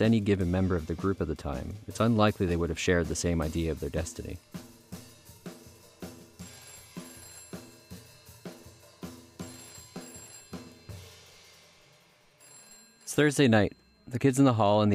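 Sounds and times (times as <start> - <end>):
speech: 0.0 - 4.7, 13.2 - 14.9
telephone ringing: 6.0 - 11.6, 12.2 - 14.9.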